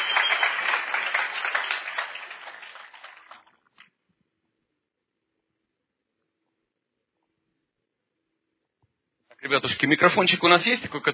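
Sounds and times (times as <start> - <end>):
audience applause welcoming a guest onstage: 0.0 - 3.6
speech: 9.5 - 11.1.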